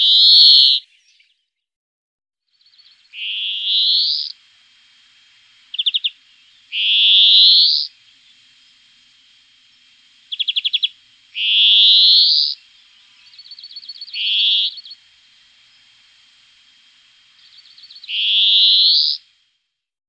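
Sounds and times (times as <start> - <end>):
European greenfinch song with fast ringing trills: 2.5 - 4.4, 5.7 - 8.8, 9.7 - 15.9, 17.4 - 19.2.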